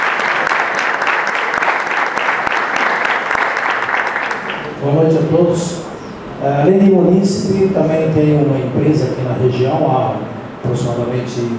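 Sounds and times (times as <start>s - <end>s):
audience applause: 0.0s - 4.8s
speech: 4.8s - 11.5s.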